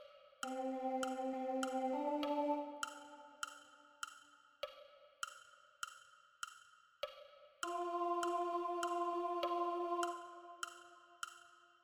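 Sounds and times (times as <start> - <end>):
alto voice singing gospel: 0.4 - 3.8, 7.6 - 11.4.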